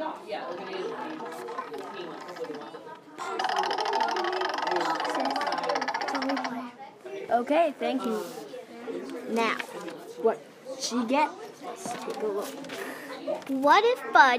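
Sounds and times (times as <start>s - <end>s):
prize wheel spinning with a ticking clatter: 0.5s - 6.6s
speech: 7.4s - 8.4s, 9.3s - 11.4s, 12.0s - 14.3s.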